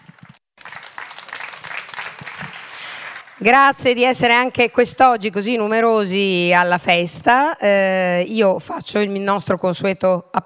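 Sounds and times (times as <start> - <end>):
audience applause: 0.0 - 3.5
speech: 3.4 - 10.4.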